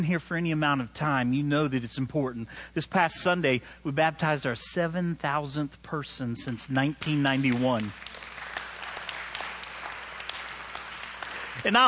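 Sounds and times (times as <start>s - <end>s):
speech: 0.0s - 8.3s, 11.6s - 11.8s
large crowd applauding: 7.0s - 11.8s.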